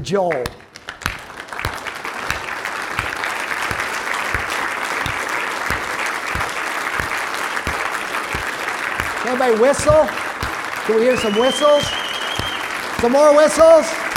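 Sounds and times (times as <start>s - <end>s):
speech: 0.0s - 0.7s, 9.2s - 10.2s, 10.9s - 12.0s, 13.0s - 14.0s
audience applause: 0.6s - 14.1s.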